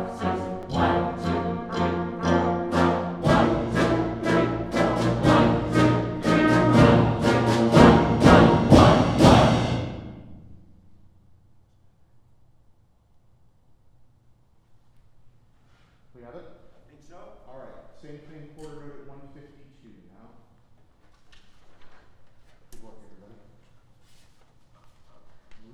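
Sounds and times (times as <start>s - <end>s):
musicians playing: 0.0s - 10.5s.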